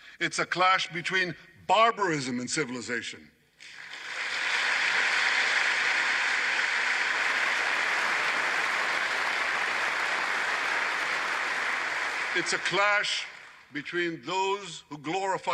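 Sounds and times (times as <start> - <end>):
speech: 0.2 - 3.4, 12.4 - 15.5
audience applause: 3.6 - 13.7.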